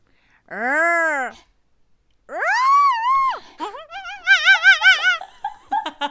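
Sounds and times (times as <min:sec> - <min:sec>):
voice imitating an elephant: 0:00.5 - 0:01.5, 0:02.3 - 0:05.2.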